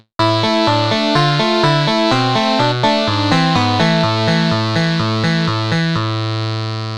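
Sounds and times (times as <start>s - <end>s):
charang synth lead: 0.2s - 6.8s.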